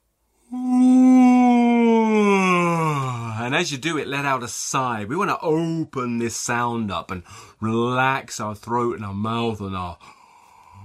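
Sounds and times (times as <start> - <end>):
yawning: 0.4 - 3.4, 10.0 - 10.8
speech: 3.6 - 10.2.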